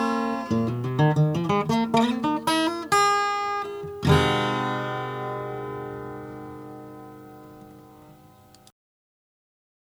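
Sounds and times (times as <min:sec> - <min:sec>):
natural finish acoustic guitar: 0:00.0 - 0:08.7.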